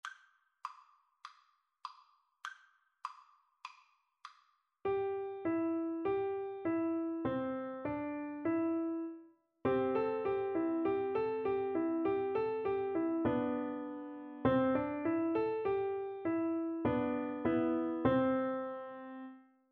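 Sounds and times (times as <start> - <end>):
piano duet: 4.9 - 19.4.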